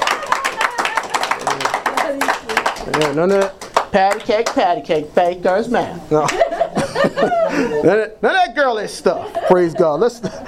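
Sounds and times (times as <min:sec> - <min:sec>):
audience clapping: 0:00.0 - 0:05.4
speech: 0:02.9 - 0:06.4, 0:07.0 - 0:10.4
laughter: 0:06.2 - 0:08.1, 0:08.9 - 0:10.4.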